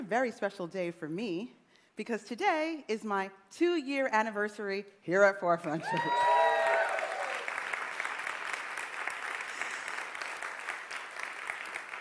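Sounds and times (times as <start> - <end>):
speech: 0.1 - 6.3
audience applause: 5.8 - 11.9.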